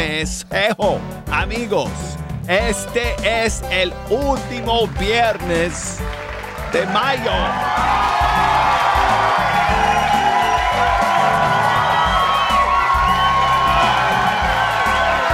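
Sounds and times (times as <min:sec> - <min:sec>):
speech: 0:00.1 - 0:08.5
crowd applause: 0:04.8 - 0:15.3
crowd cheering with whoops and shouts: 0:06.4 - 0:15.3.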